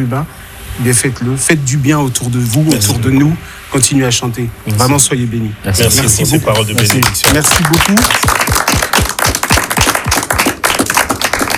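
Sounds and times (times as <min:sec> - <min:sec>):
speech: 0:00.0 - 0:08.3
audience applause: 0:06.5 - 0:11.5.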